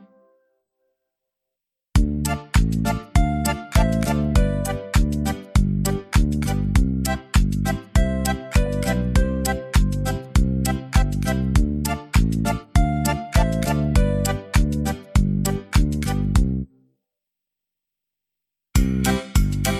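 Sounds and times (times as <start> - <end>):
instrumental music: 2.0 - 16.8, 18.8 - 19.7.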